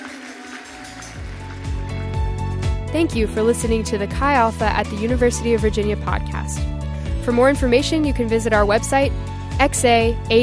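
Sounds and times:
audience applause: 0:00.0 - 0:01.9
speech: 0:02.9 - 0:10.4.

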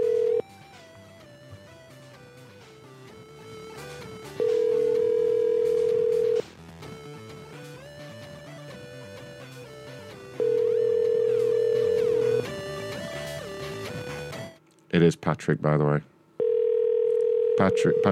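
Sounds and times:
telephone ringback tone on an outgoing call: 0:00.0 - 0:00.5, 0:03.6 - 0:06.4, 0:10.3 - 0:13.5, 0:16.4 - 0:18.1
music: 0:00.0 - 0:14.6
speech: 0:15.0 - 0:16.1, 0:17.6 - 0:18.1.

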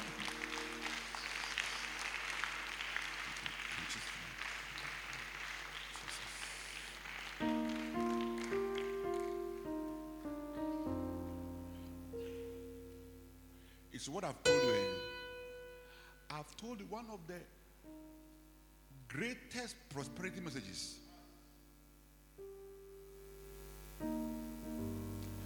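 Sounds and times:
sustained keyboard chords: 0:00.0 - 0:01.2, 0:07.4 - 0:16.4, 0:17.8 - 0:19.1, 0:20.0 - 0:25.4
audience clapping: 0:00.0 - 0:10.6
speech: 0:14.0 - 0:15.0, 0:16.4 - 0:17.6, 0:19.1 - 0:21.0.

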